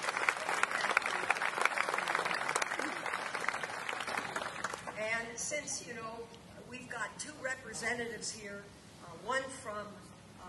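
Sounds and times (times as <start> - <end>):
audience applause: 0.0 - 5.0
speech: 5.6 - 10.0.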